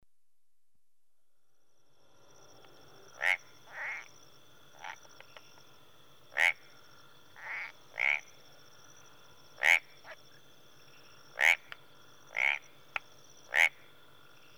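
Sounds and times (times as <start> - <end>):
tree frogs calling in a marsh in Rwanda in early evening: 3.1 - 14.5.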